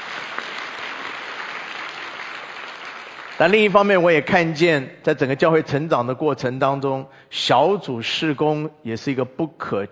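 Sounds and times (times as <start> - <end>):
sustained applause from a large group: 0.0 - 3.9
speech: 3.4 - 9.9.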